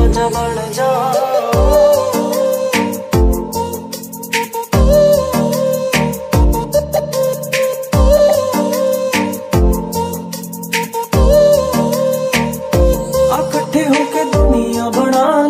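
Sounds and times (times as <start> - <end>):
Punjabi song ringtone: 0.1 - 15.3.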